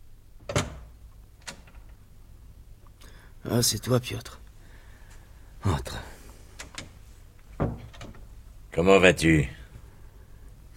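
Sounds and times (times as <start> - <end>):
speech: 3.4 - 4.4, 5.6 - 6.1, 8.8 - 9.6
knocking on a friend's door: 7.6 - 8.0.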